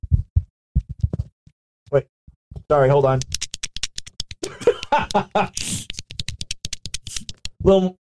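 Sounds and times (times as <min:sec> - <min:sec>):
speech: 0:01.9 - 0:03.4, 0:04.9 - 0:05.9, 0:07.6 - 0:08.0
wet finger squelching in belly button: 0:03.2 - 0:04.5, 0:05.1 - 0:07.6
laughter: 0:04.4 - 0:06.1.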